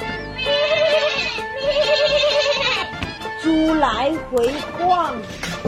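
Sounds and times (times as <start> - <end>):
sheep bleating: 0.2 - 3.0
speech: 3.8 - 5.5.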